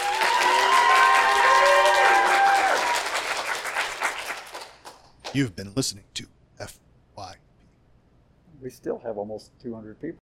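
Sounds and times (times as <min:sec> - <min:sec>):
audience applause: 0:00.0 - 0:05.4
speech: 0:05.4 - 0:06.8, 0:08.6 - 0:10.2.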